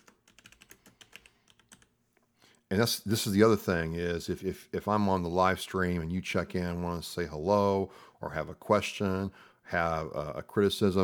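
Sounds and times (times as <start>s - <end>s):
typing a reply on a computer keyboard: 0.0s - 1.9s
speech: 2.7s - 11.0s.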